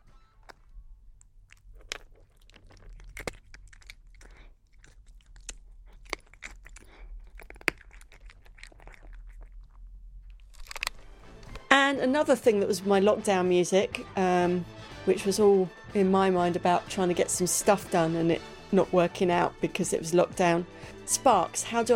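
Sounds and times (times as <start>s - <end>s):
cat eating biscuits: 0.0s - 11.7s
speech: 11.9s - 21.9s.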